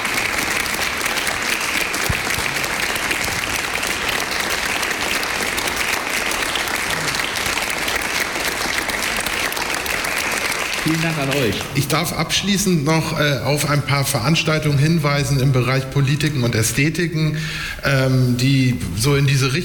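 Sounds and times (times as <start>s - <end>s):
audience applause: 0.0s - 12.4s
speech: 10.8s - 19.6s.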